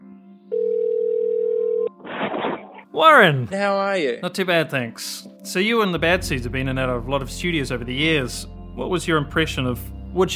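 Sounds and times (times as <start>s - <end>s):
telephone ringing tone: 0.5s - 2.0s
speech: 3.0s - 10.3s.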